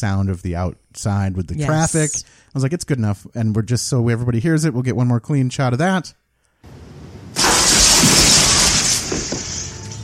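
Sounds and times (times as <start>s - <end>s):
speech: 0.0s - 6.2s
window glass crashing: 7.3s - 10.0s.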